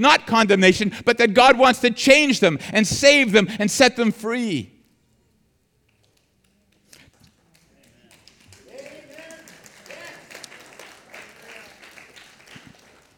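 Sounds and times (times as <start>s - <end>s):
speech: 0.0s - 4.7s
audience clapping: 5.9s - 13.1s.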